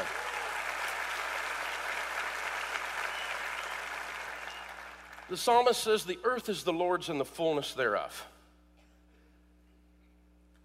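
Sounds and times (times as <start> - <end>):
audience applause: 0.0 - 5.3
speech: 5.3 - 8.3.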